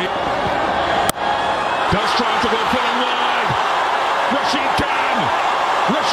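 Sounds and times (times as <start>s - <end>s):
stadium crowd roaring as Gujarat Titans win a cricket match on a last-ball six: 0.0s - 6.1s
voices shouting: 1.4s - 6.1s.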